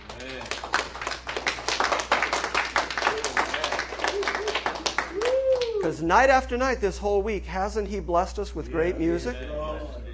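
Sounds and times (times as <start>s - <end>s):
audience applause: 0.0s - 5.8s
speech: 5.8s - 10.0s.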